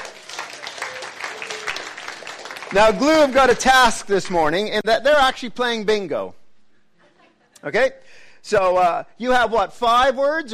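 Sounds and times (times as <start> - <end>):
church congregation clapping for a group of helpers: 0.0 - 4.6
speech: 2.7 - 6.4, 7.6 - 10.5.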